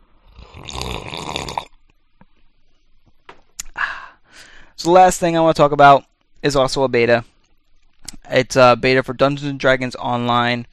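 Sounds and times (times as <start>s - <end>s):
person sipping a drink: 0.3s - 1.8s
speech: 4.8s - 7.3s, 8.3s - 10.7s.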